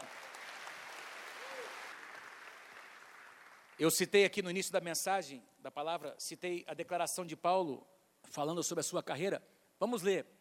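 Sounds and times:
audience applause: 0:00.0 - 0:03.8
speech: 0:03.8 - 0:10.4.

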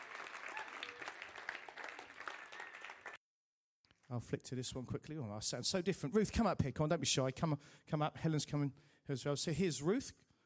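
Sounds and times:
audience applause: 0:00.0 - 0:03.2
speech: 0:04.1 - 0:10.2.

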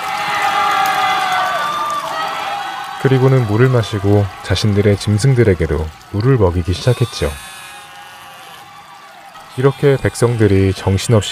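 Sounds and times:
crowd cheering: 0:00.0 - 0:11.3
speech: 0:03.0 - 0:07.5, 0:09.6 - 0:11.3.

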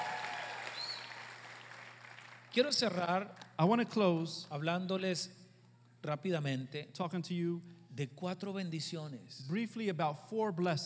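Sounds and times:
audience cheering: 0:00.0 - 0:02.8
audience applauding: 0:00.0 - 0:03.2
speech: 0:02.6 - 0:05.4, 0:06.0 - 0:10.8.

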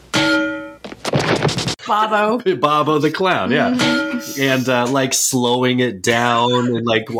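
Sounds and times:
frying pan hitting a face: 0:00.0 - 0:00.8
speech: 0:01.9 - 0:07.1.

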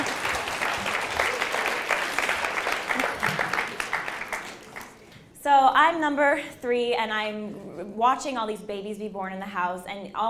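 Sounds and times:
crowd applauding: 0:00.0 - 0:05.1
speech: 0:05.8 - 0:10.2.

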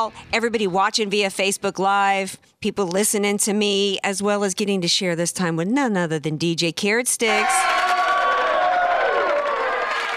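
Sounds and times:
speech: 0:00.0 - 0:08.0
crowd cheering and applause: 0:07.3 - 0:10.1
high whoops and shouts: 0:07.3 - 0:10.1.

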